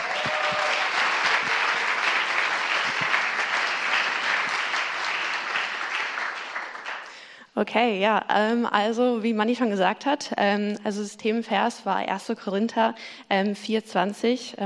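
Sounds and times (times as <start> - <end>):
audience applause: 0.0 - 7.2
speech: 7.6 - 14.6.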